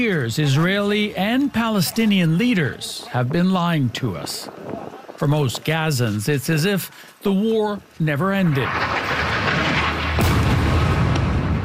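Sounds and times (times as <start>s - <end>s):
speech: 0.0s - 9.2s
rumble and crackling debris: 0.0s - 11.6s
airstrike explosion on a mosque and refugee camp in Gaza: 8.6s - 11.6s.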